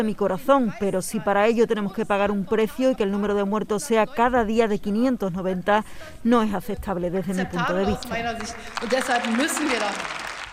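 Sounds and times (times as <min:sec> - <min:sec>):
speech: 0:00.0 - 0:10.2
Bundestag parliamentary chamber applauding: 0:08.0 - 0:10.5.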